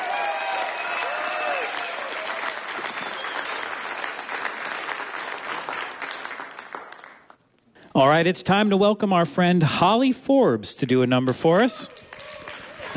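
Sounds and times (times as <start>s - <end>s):
audience applause for a performer at a live music show: 0.0s - 7.4s, 11.9s - 12.9s
speech: 8.0s - 12.0s.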